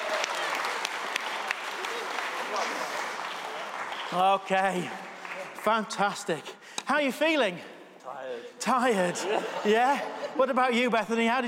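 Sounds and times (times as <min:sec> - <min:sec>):
crowd clapping: 0:00.0 - 0:06.2
speech: 0:04.1 - 0:05.0, 0:05.6 - 0:07.7, 0:08.3 - 0:11.4
laughter: 0:08.7 - 0:10.9.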